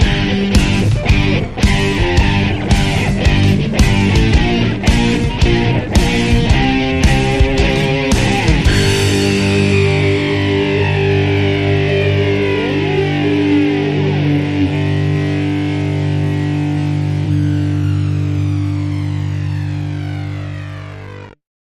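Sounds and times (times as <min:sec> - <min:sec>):
modern rock fuzz guitar: 0:00.0 - 0:21.4.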